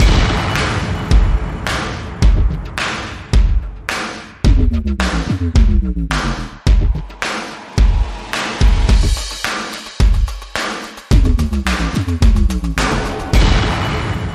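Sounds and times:
drums: 0.0s - 14.3s.

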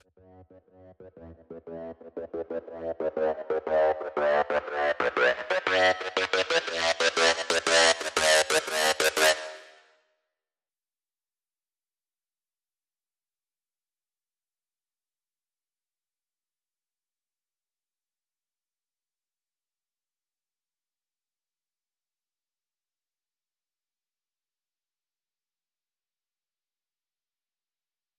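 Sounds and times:
synth: 0.0s - 9.7s.

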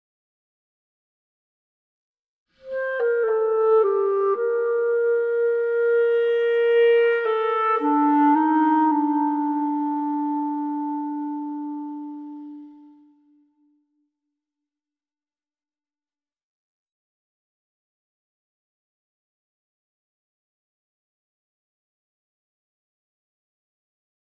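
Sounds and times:
clarinet: 2.5s - 14.0s.

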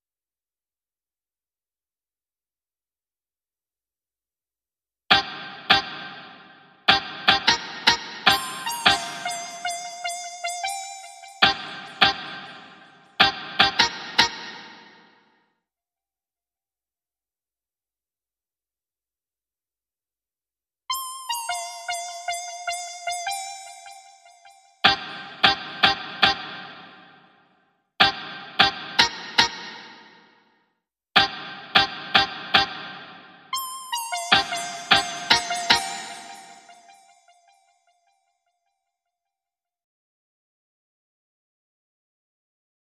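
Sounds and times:
synth guitar: 5.1s - 15.1s, 20.9s - 27.1s, 28.0s - 29.9s, 31.2s - 37.6s.

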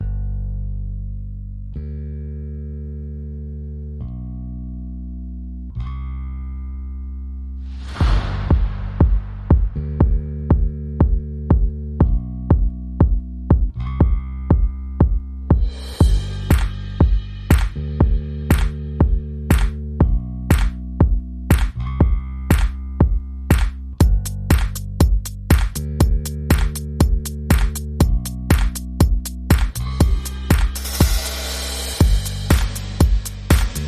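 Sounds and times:
bass: 0.0s - 33.8s
drums: 7.8s - 33.8s.

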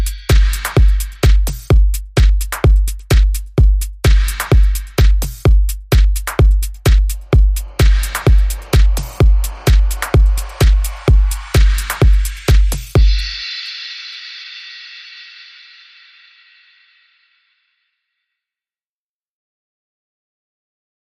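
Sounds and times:
music beat: 0.0s - 15.9s.

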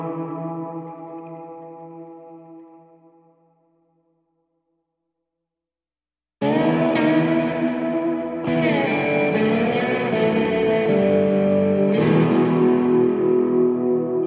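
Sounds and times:
guitar in E minor: 0.0s - 3.5s, 6.4s - 14.2s.

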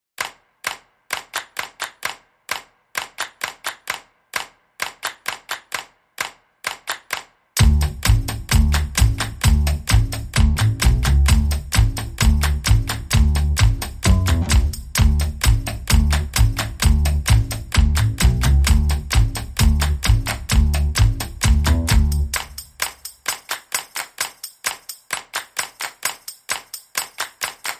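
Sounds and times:
bass: 7.6s - 22.8s
drums: 7.6s - 23.5s.

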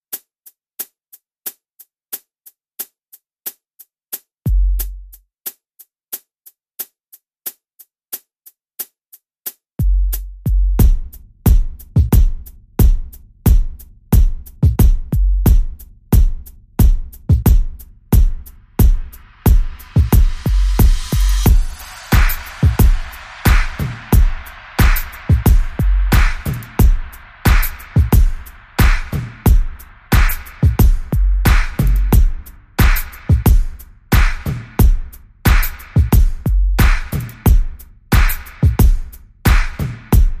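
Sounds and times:
music beat: 4.5s - 5.6s, 9.5s - 40.3s.

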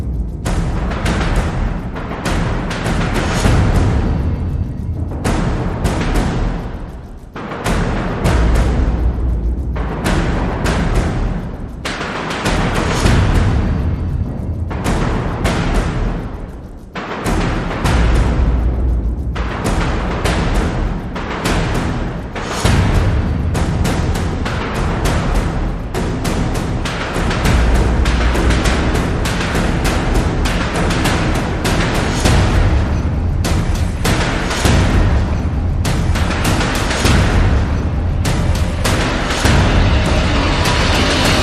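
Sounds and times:
percussion only: 0.0s - 41.4s.

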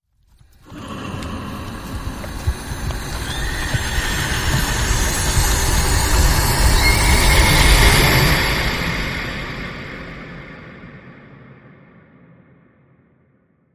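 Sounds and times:
majestic rising sound: 0.6s - 9.8s.

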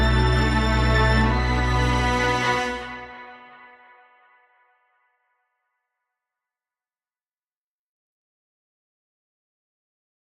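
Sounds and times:
string music: 0.0s - 4.7s.

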